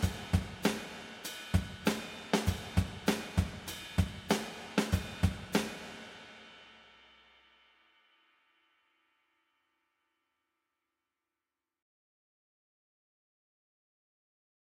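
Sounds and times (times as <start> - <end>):
1970s drum kit with vintage room reverb: 0.0 - 8.5.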